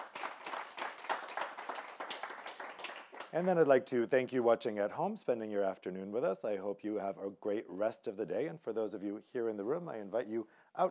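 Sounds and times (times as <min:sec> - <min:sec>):
group applause: 0:00.0 - 0:03.7
speech: 0:03.3 - 0:10.8.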